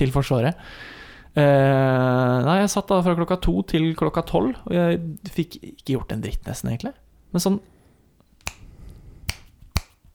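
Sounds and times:
speech: 0.0s - 7.7s
finger snap: 8.4s - 8.7s, 9.3s - 10.1s.

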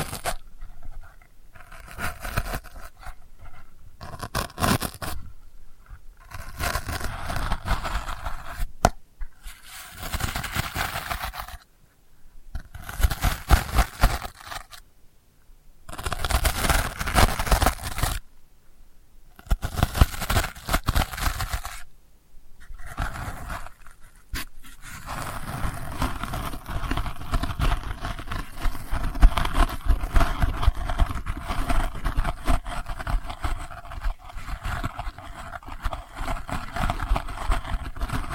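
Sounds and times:
delicate papery scratching: 0.0s - 11.7s, 12.5s - 14.8s, 15.9s - 18.3s, 19.3s - 21.9s, 22.6s - 38.3s.

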